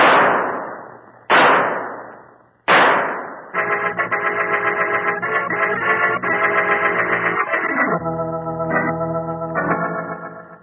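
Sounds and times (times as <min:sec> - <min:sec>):
pistol shots fired at a fleeing killer: 0:00.0 - 0:03.6
music: 0:03.6 - 0:10.6.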